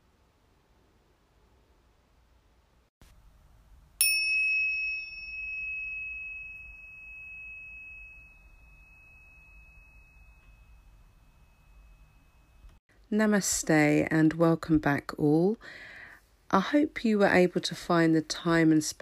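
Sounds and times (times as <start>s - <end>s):
faint hiss: 0.0s - 19.0s
meditation bell ringing to close practice: 4.0s - 12.8s
speech: 13.1s - 15.9s, 16.5s - 19.0s.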